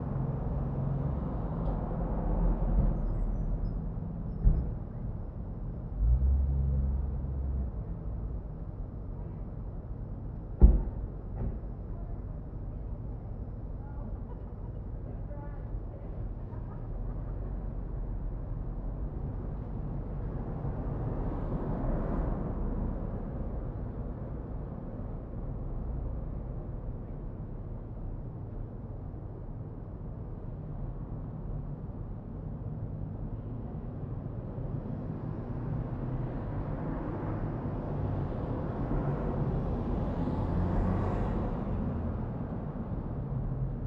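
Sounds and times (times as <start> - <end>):
outdoor noise: 0.0 - 43.8.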